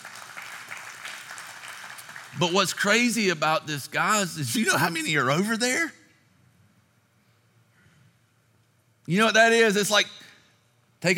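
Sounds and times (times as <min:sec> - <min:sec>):
crowd applauding: 0:00.0 - 0:03.2
speech: 0:02.4 - 0:06.0, 0:09.1 - 0:10.3.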